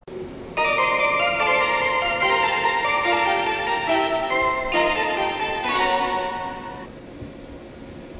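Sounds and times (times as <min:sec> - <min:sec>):
melody: 0:00.6 - 0:06.9.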